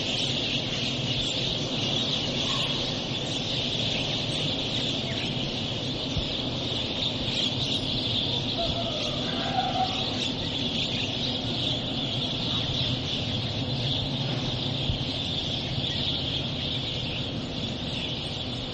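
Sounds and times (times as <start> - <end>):
birds in November: 0.0 - 18.7.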